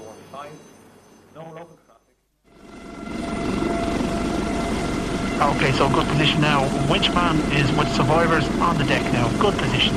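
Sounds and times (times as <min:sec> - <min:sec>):
speech: 0:01.4 - 0:01.8, 0:05.5 - 0:09.9
rescue helicopter lifting off: 0:02.5 - 0:09.9.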